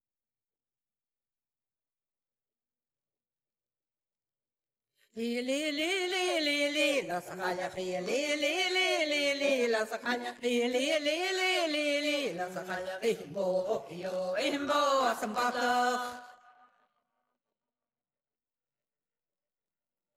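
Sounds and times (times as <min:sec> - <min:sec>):
traditional celtic song vocals: 0:05.2 - 0:16.3.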